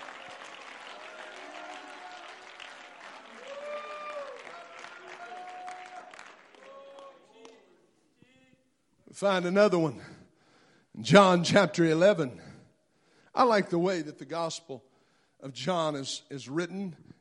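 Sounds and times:
audience clapping hands: 0.0 - 7.8
speech: 9.2 - 10.1, 11.0 - 12.4, 13.4 - 17.0.

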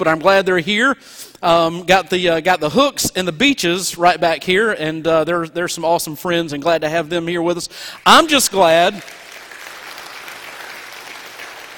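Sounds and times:
speech: 0.0 - 9.3
audience clapping: 8.0 - 11.7.

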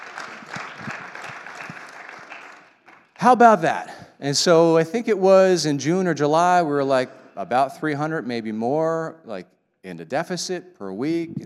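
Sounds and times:
audience applause: 0.0 - 3.4
speech: 3.2 - 11.4.

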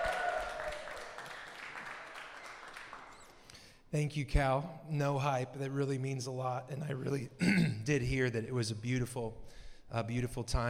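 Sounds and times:
audience clapping and applause: 0.0 - 3.5
speech: 3.9 - 10.6.

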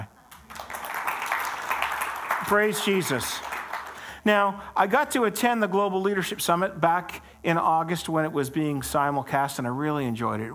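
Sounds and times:
audience applause: 0.2 - 4.2
speech: 2.4 - 3.5, 4.2 - 10.5.

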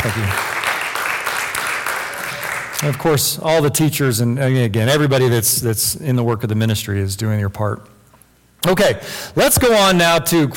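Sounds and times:
speech: 0.0 - 0.5, 2.8 - 8.0, 8.6 - 10.5
crowd applauding: 0.0 - 3.0.

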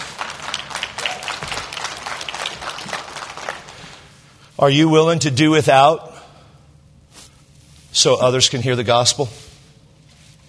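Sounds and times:
audience clapping: 0.0 - 4.2
speech: 4.6 - 6.1, 8.0 - 9.4.

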